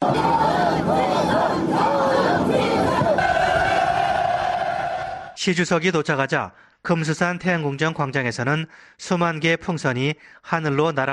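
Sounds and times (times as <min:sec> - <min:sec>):
huge crowd of citizens chanting slogans: 0:00.0 - 0:05.4
speech: 0:05.4 - 0:11.1.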